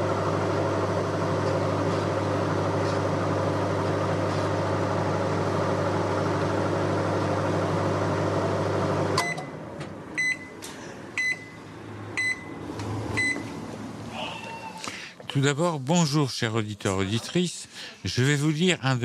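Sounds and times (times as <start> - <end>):
microwave oven humming as it runs: 0.0 - 15.2
speech: 15.4 - 19.0.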